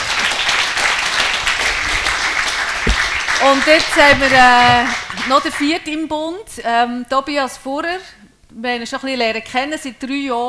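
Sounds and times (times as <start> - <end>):
audience applause: 0.0 - 5.4
speech: 3.4 - 10.4.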